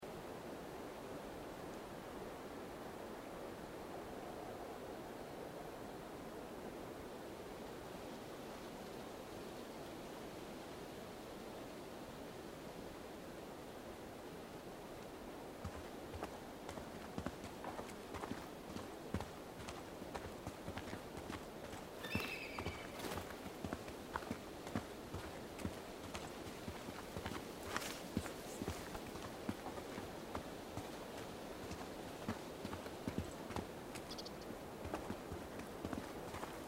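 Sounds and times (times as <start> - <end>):
forest background ambience: 0.0 - 36.6
walking on a forest road: 15.7 - 36.6.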